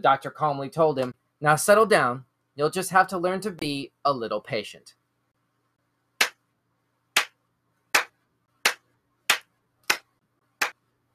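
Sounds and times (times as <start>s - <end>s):
speech: 0.0s - 5.0s
slow clap: 7.2s - 10.8s.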